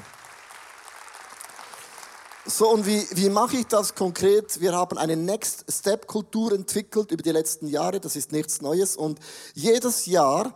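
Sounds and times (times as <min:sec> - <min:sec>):
audience applause: 0:00.0 - 0:04.0
speech: 0:02.5 - 0:10.5.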